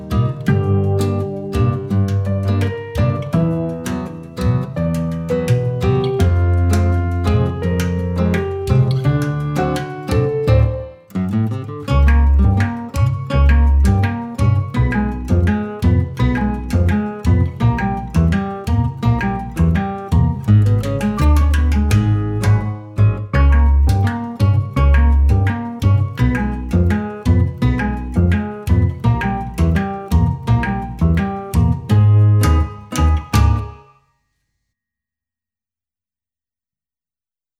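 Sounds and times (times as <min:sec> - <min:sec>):
floating acoustic music: 0:00.0 - 0:34.0.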